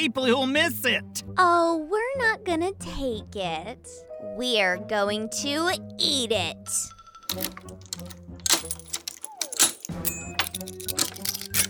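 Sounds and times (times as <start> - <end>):
speech: 0.0 - 8.8
lock being picked: 7.2 - 11.6.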